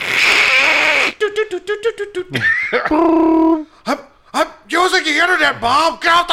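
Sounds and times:
voice imitating a dial-up modem connecting: 0.1s - 4.1s
speech: 2.1s - 4.1s, 5.1s - 6.3s.

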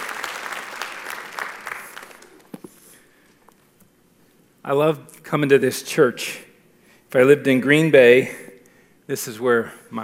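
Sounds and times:
church audience applause welcoming a guest speaker: 0.0s - 2.5s
speech: 4.6s - 6.5s, 7.1s - 8.4s, 9.1s - 10.0s.

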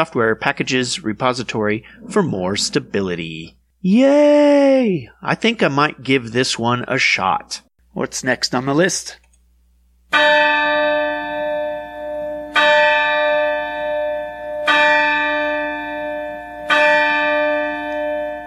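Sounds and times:
speech: 0.0s - 9.2s
clock bell striking midnight: 10.2s - 18.4s.

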